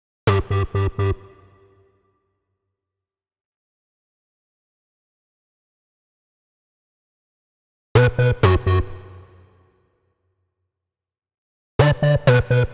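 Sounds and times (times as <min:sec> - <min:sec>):
bass in B minor: 0:00.3 - 0:01.4, 0:08.0 - 0:09.2, 0:11.8 - 0:12.7.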